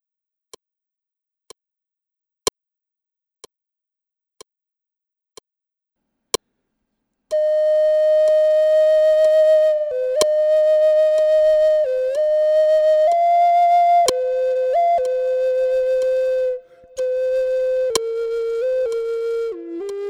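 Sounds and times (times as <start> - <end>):
Zuni flute melody: 7.3 - 20.0.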